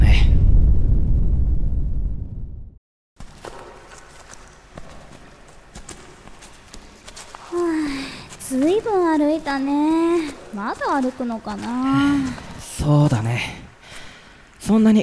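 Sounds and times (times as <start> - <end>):
deep ground rumble from a tremor: 0.0 - 2.8
quieter scattered knocks and shuffling: 3.2 - 13.4
speech: 8.6 - 13.6, 14.7 - 15.0.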